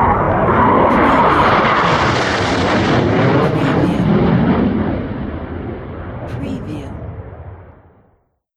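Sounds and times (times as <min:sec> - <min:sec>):
airplane: 0:00.0 - 0:06.4.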